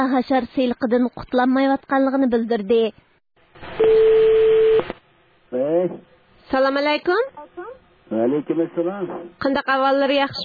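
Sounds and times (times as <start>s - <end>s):
speech: 0.0s - 3.1s, 3.7s - 4.2s, 5.5s - 10.4s
telephone line hiss: 3.6s - 5.0s
telephone beep on a call from the United States to a farmer's home in a Uyghur rural area: 3.8s - 4.9s.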